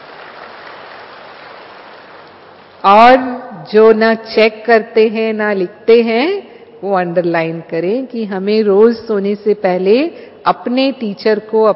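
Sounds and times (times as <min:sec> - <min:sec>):
crowd clapping: 0:00.0 - 0:02.7
speech: 0:02.8 - 0:11.7.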